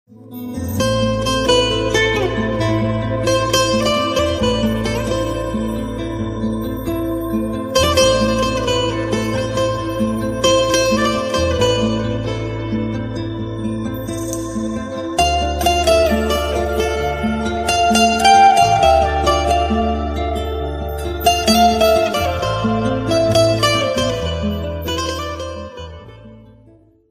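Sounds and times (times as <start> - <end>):
sad guitar ringtone: 0.1 - 26.8.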